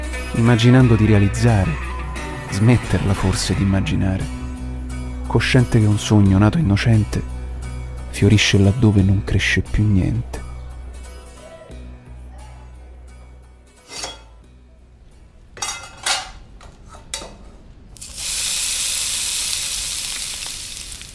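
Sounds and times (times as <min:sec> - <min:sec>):
speech: 0:00.3 - 0:01.9, 0:02.5 - 0:04.4, 0:05.3 - 0:07.4, 0:08.1 - 0:10.4
water poured into burnt frying pan: 0:18.0 - 0:21.1.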